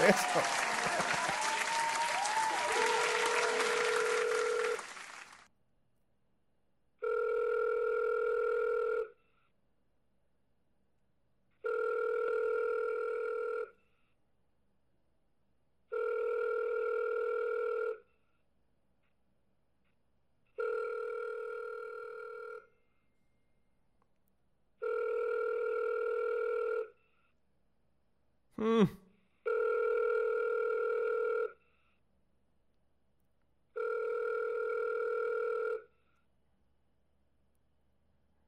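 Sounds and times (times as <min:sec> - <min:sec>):
laughter: 0:00.0 - 0:04.2
speech: 0:00.1 - 0:01.2
telephone ringing unanswered: 0:02.9 - 0:05.1, 0:07.0 - 0:09.1, 0:11.6 - 0:13.7, 0:15.9 - 0:18.0, 0:20.6 - 0:22.7, 0:24.8 - 0:26.9, 0:29.5 - 0:31.5, 0:33.8 - 0:35.9.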